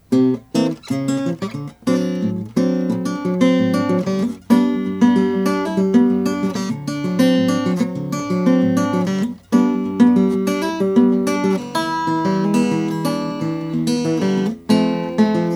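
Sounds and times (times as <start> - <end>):
1945 Harmony Stella H1105 sunburst guitar: 0.0 - 15.5.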